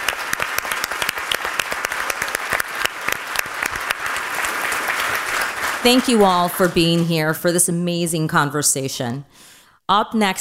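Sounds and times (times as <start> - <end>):
audience applause: 0.0 - 7.0
speech: 5.8 - 10.3.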